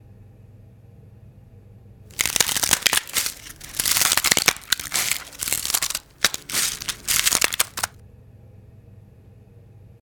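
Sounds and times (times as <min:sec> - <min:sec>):
ice breaking in a plastic ice tray: 0:02.1 - 0:07.9.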